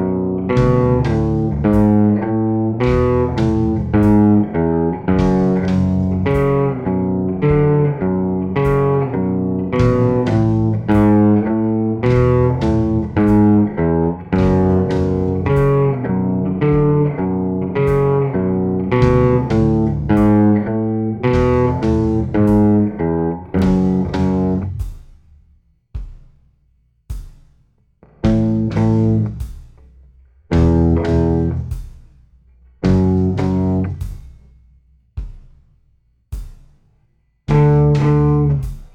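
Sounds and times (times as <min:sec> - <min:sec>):
slow guitar riff: 0:00.0 - 0:24.8, 0:28.1 - 0:29.5, 0:30.5 - 0:31.8, 0:32.8 - 0:34.0, 0:37.5 - 0:38.7.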